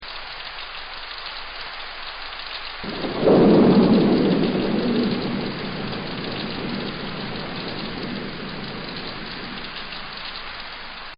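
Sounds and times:
rain: 0.0 - 11.1
thunder: 2.8 - 10.6.

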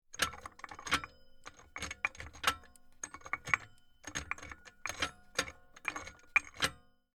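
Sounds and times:
small safe dial turning: 0.1 - 6.9.

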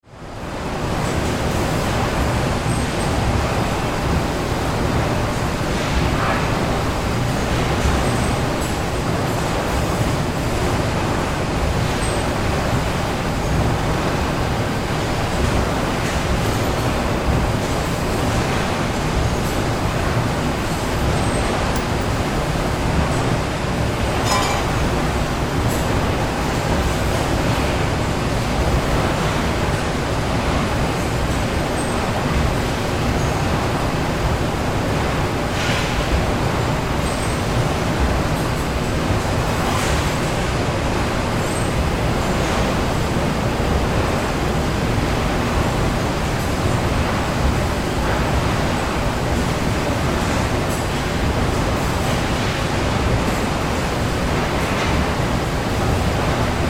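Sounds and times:
heavy industrial factory activity: 0.0 - 56.6.

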